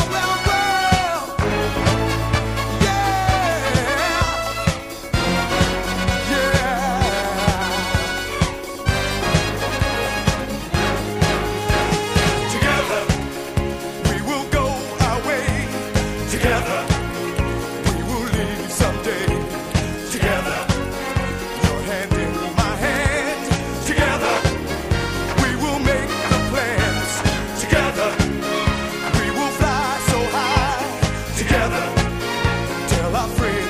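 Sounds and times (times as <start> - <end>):
free spins music loop: 0.0 - 33.6.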